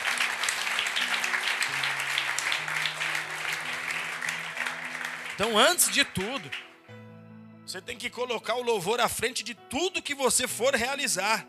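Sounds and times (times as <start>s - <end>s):
audience applause: 0.0s - 6.8s
low sustained keyboard or organ notes: 0.0s - 9.0s
speech: 5.4s - 6.7s, 7.7s - 11.4s.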